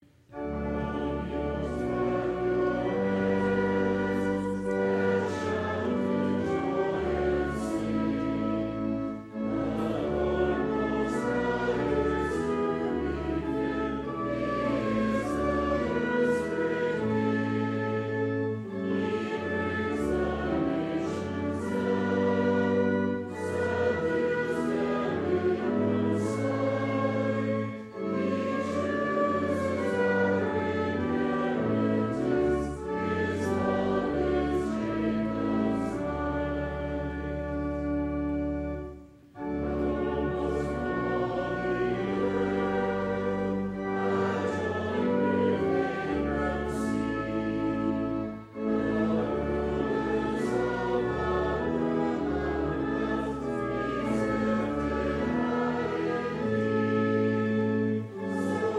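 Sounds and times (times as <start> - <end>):
trumpet: 0.3 - 58.7.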